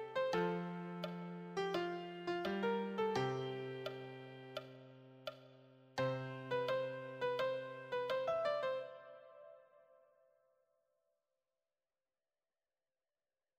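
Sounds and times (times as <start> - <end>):
beginner piano solo: 0.0 - 4.8, 6.0 - 9.5.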